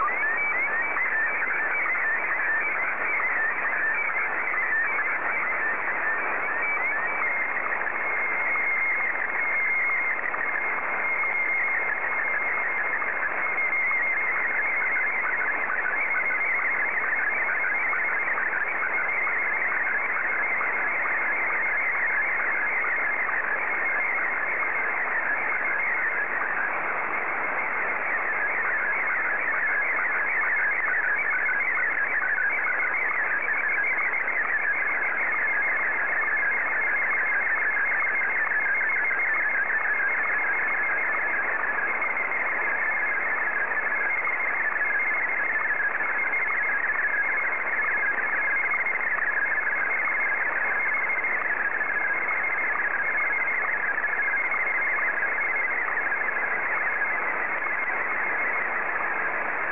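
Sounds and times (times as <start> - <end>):
Martin 1 slow-scan television signal: 0.0 - 59.7.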